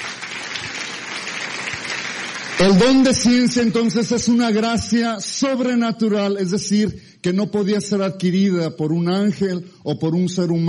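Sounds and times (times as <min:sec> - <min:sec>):
applause during a religious talk: 0:00.0 - 0:04.2
speech: 0:02.6 - 0:10.6.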